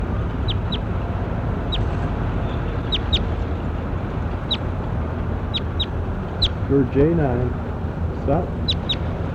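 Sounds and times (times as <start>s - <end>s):
bird calling: 0.1s - 6.7s, 8.5s - 9.2s
speech: 6.7s - 8.6s.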